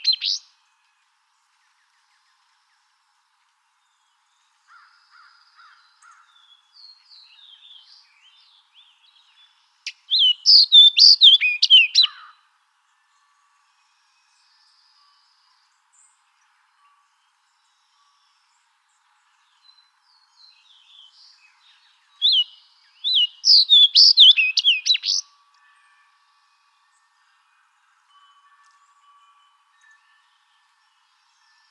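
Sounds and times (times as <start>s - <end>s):
Fox Sparrow singing: 0.0s - 0.5s, 6.3s - 12.3s, 19.7s - 25.3s.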